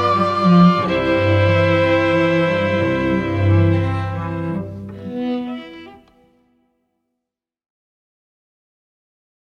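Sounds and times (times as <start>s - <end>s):
string trio playing: 0.0s - 6.6s.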